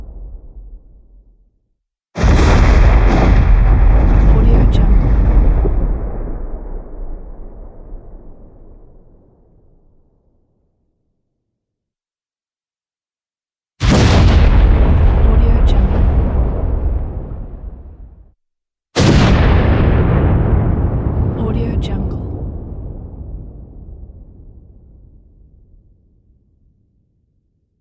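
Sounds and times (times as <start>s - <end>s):
thunder: 0.0s - 1.4s, 2.2s - 10.2s, 13.8s - 18.3s, 19.0s - 26.6s.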